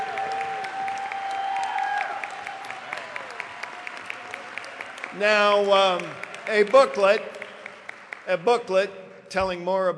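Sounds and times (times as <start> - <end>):
audience cheering: 0.0 - 7.2
audience applause: 0.0 - 8.7
speech: 5.2 - 7.4, 8.3 - 9.9.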